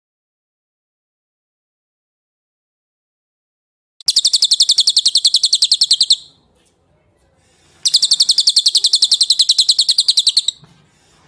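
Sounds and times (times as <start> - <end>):
bird trilling: 4.0 - 6.4, 7.8 - 10.6.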